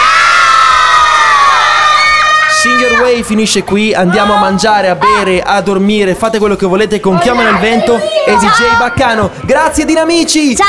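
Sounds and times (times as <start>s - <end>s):
group of children cheering and shouting a greeting: 0.0s - 5.5s, 7.1s - 9.2s
speech: 2.9s - 10.6s.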